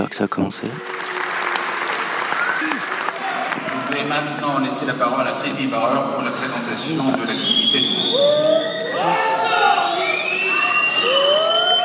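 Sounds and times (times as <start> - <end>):
speech: 0.1 - 1.0, 3.8 - 9.5
audience whistling at a speaker: 0.8 - 3.7, 6.9 - 11.8.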